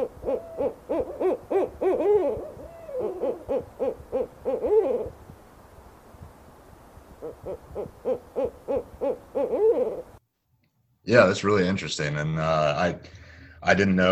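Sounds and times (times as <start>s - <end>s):
Barred Owl monkey-like calls: 0.0s - 5.2s, 7.2s - 10.2s
speech: 11.1s - 14.1s.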